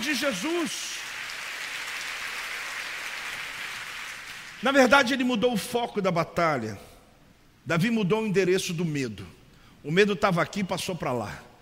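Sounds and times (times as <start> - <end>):
audience clapping in worship: 0.0 - 4.7
speech: 0.1 - 1.0, 4.6 - 6.9, 7.6 - 11.5.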